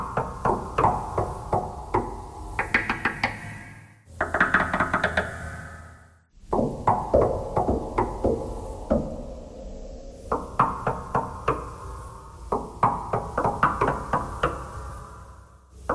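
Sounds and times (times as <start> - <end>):
knocking thread noise: 0.0 - 5.7, 6.4 - 9.2, 10.3 - 11.8, 12.4 - 14.8.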